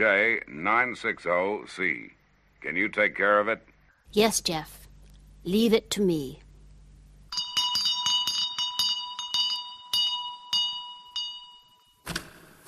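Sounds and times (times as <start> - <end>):
speech: 0.0 - 4.8, 5.4 - 6.4
bell rung to summon a butler: 7.3 - 12.1.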